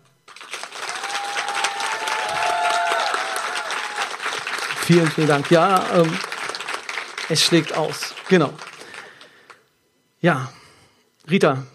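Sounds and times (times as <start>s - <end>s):
audience applause: 0.3s - 9.6s
speech: 4.9s - 6.3s, 7.3s - 8.7s, 10.2s - 10.6s, 11.3s - 11.7s.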